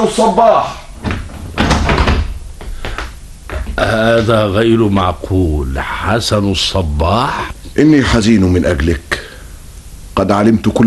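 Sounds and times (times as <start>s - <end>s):
speech: 0.0s - 0.8s, 3.8s - 9.2s, 10.2s - 10.8s
door opening with thuds and clatters: 1.0s - 2.4s
knocks: 1.0s - 5.2s.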